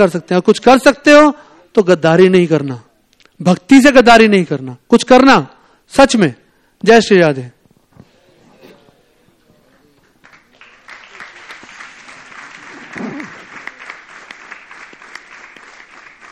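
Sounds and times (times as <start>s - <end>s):
speech: 0.0s - 7.6s
audience clapping: 10.0s - 16.3s.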